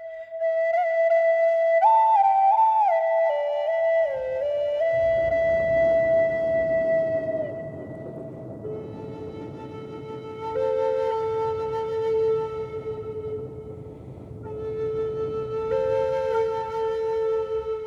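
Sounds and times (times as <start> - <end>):
Native American flutes: 0.0 - 17.8
thunder on a warm summer evening: 4.0 - 17.8.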